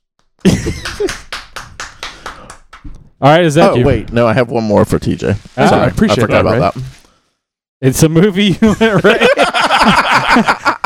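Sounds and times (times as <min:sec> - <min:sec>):
round of applause with evenly spaced hand claps: 0:00.2 - 0:03.1
speech: 0:00.4 - 0:01.2, 0:03.2 - 0:06.9, 0:07.8 - 0:10.7
laughter: 0:00.4 - 0:01.3, 0:08.5 - 0:10.8.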